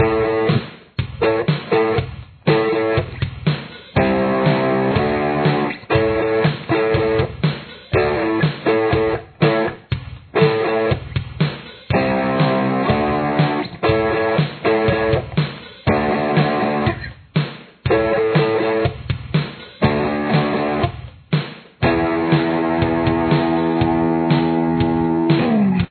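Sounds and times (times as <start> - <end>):
guitar playing a verse: 0.0 - 0.6, 1.2 - 3.2, 4.0 - 7.4, 8.0 - 11.2, 11.9 - 17.1, 17.9 - 19.0, 19.8 - 21.0, 21.8 - 25.8.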